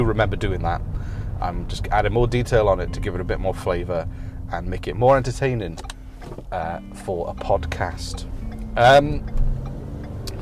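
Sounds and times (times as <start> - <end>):
speech: 0.0 - 9.4
car driving through countryside: 0.0 - 10.4.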